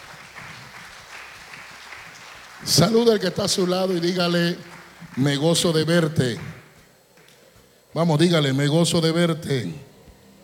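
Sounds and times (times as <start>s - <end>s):
audience applause: 0.0s - 7.3s
speech: 2.6s - 6.5s, 7.9s - 9.9s.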